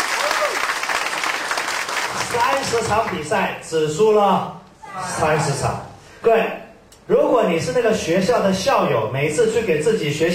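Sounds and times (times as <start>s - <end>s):
audience applause from listeners at a talk: 0.0s - 3.1s
speech: 2.4s - 10.3s.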